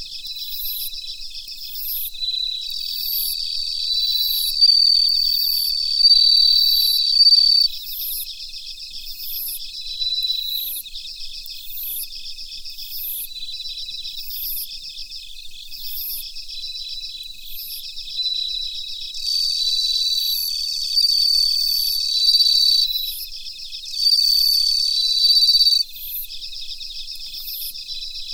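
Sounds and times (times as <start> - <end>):
bell cricket chirping: 0.0 - 28.3.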